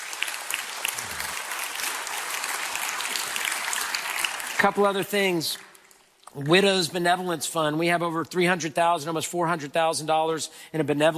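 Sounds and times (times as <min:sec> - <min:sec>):
audience cheering and applause: 0:00.0 - 0:04.8
speech: 0:04.6 - 0:05.7, 0:06.3 - 0:11.1.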